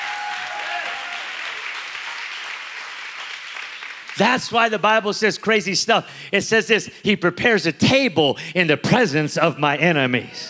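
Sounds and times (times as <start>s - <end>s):
audience clapping: 0.0s - 4.8s
speech: 4.2s - 10.4s.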